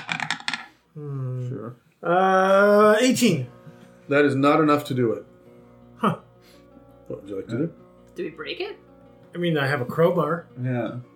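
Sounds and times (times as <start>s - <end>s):
dice rolled during a tabletop role-playing game: 0.0s - 0.7s
speech: 1.0s - 3.5s, 4.1s - 5.3s, 6.0s - 6.2s, 7.1s - 8.8s, 9.4s - 11.1s.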